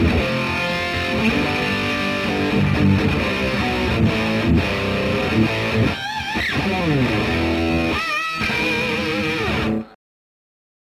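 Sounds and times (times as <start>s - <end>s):
Kustom Hv 100 valve preamp guitar amplifier overdrive: 0.0s - 10.0s.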